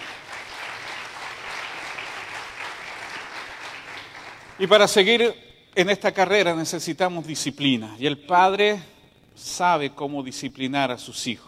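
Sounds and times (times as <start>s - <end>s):
audience applause: 0.0s - 4.6s
speech: 4.6s - 11.4s.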